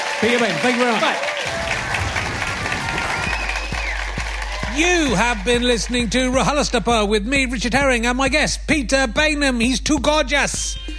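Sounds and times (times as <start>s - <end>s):
audience applause: 0.0s - 6.4s
speech: 0.2s - 1.6s, 4.7s - 10.9s.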